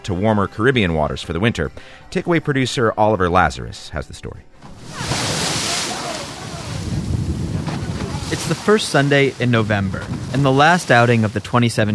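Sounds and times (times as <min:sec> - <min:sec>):
speech: 0:00.1 - 0:05.1, 0:08.4 - 0:11.9
rough sea surf crashing: 0:04.6 - 0:11.9
gusts of wind buffeting the microphone: 0:04.7 - 0:11.9.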